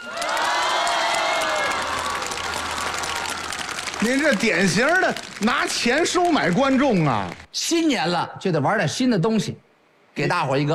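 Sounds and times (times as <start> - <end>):
shrill cheers and whoops: 0.0 - 4.7
large crowd applause: 0.0 - 7.5
speech: 4.0 - 9.6, 10.2 - 10.7.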